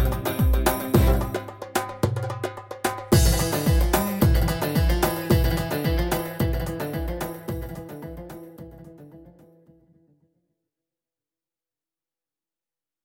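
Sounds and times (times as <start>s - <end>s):
music beat: 0.0s - 9.3s.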